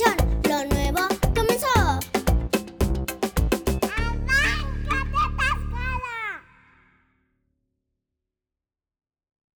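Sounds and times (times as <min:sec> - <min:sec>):
jingle: 0:00.0 - 0:05.8.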